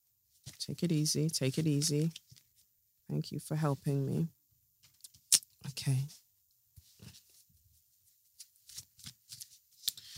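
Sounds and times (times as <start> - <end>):
speech: 0.7 - 2.3, 3.1 - 4.4, 5.7 - 6.2
deck of reading cards being handled and shuffled: 8.4 - 10.1.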